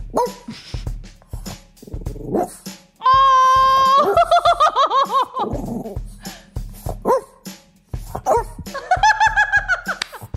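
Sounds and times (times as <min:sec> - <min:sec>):
French Bulldog breathing noises: 0:00.3 - 0:02.7, 0:05.8 - 0:08.7
laughter: 0:03.7 - 0:05.7, 0:08.7 - 0:10.2.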